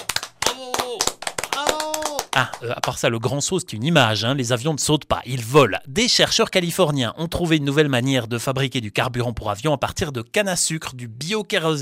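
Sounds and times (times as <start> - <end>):
audience clapping: 0.0 - 3.1
speech: 2.4 - 11.7.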